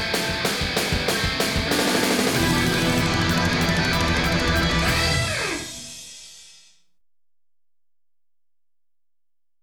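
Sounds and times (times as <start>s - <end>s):
instrumental theme music: 0.0s - 6.0s.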